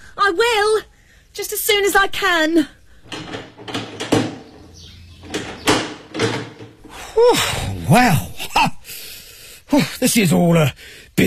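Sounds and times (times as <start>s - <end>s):
speech: 0.2s - 3.8s, 7.2s - 8.7s, 9.7s - 11.2s
door being unlocked and opened: 3.0s - 7.2s.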